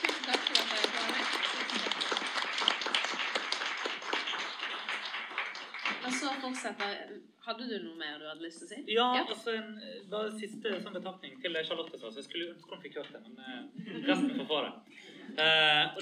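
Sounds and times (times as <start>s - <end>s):
small group applauding: 0.0s - 7.0s
speech: 6.3s - 16.0s.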